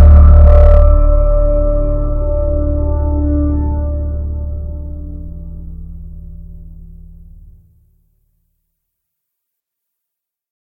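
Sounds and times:
piano: 0:00.0 - 0:07.6.

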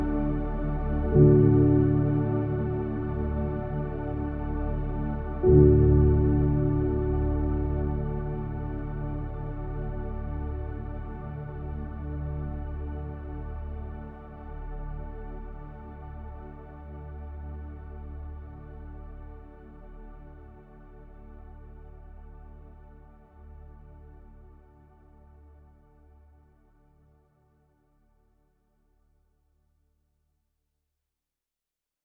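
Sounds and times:
inspiring ambient soundscape: 0:00.0 - 0:25.3.

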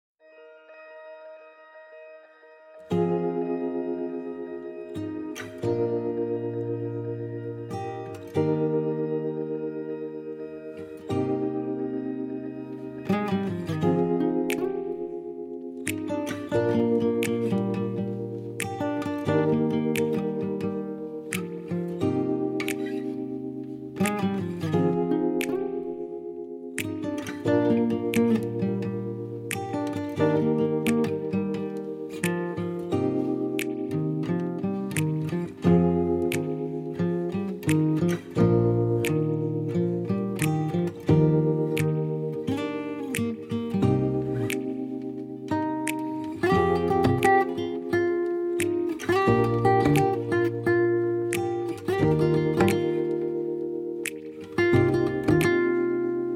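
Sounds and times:
instrumental music: 0:00.2 - 0:56.3.

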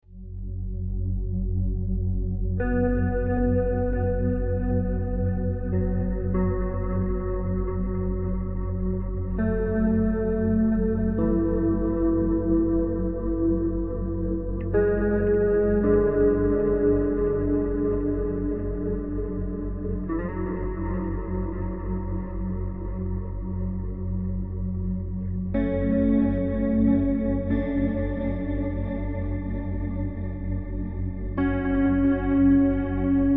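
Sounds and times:
peaceful spa relaxation music for massage: 0:00.1 - 0:33.3.

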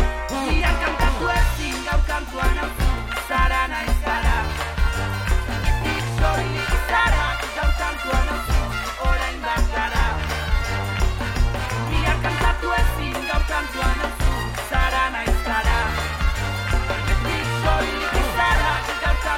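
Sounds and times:
brass band playing: 0:00.0 - 0:19.3.

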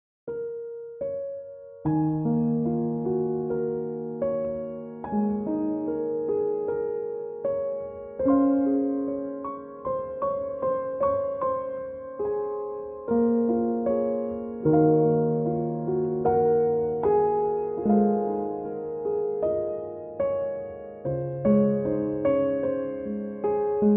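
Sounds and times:
piano instrumental: 0:00.3 - 0:23.9.

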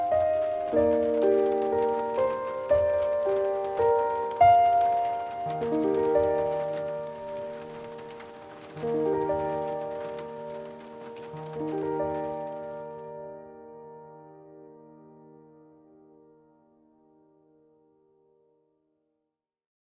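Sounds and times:
rain on the roof: 0:00.0 - 0:14.3
relaxing song: 0:00.0 - 0:18.6.

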